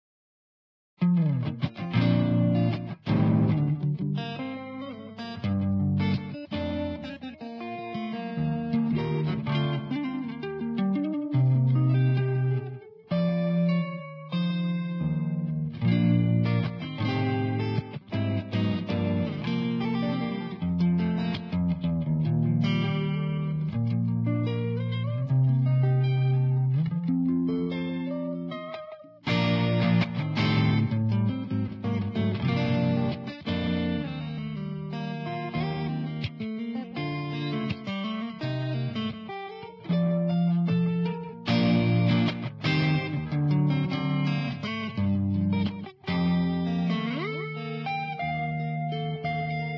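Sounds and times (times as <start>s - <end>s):
electric guitar: 1.0s - 49.7s.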